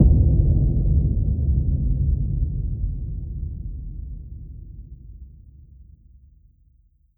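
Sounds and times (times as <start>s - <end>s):
deep boom: 0.0s - 5.6s.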